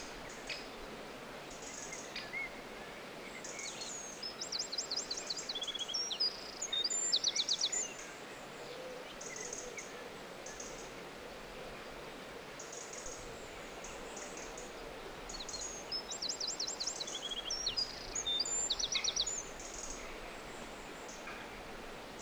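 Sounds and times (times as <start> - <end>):
gentle hiss: 0.0 - 22.2
bird song: 3.3 - 10.9, 12.6 - 21.4.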